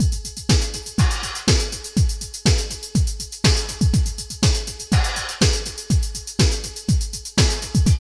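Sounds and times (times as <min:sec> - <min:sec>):
industrial techno music: 0:00.0 - 0:08.0.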